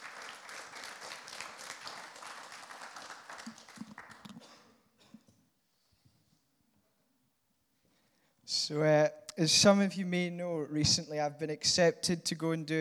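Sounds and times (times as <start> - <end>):
audience applause: 0.0 - 4.5
speech: 8.7 - 12.7.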